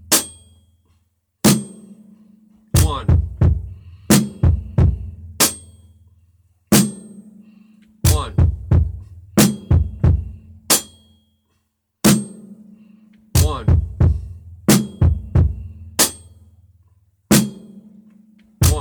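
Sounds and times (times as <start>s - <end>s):
drum beat: 0.0s - 0.4s, 1.5s - 2.0s, 2.8s - 5.7s, 8.1s - 10.9s, 13.4s - 16.3s, 17.3s - 17.8s, 18.6s - 18.8s.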